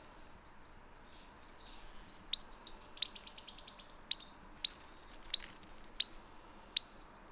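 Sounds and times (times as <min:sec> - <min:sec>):
Black-headed tody-flycatcher ticking notes and trill: 0:02.3 - 0:06.9.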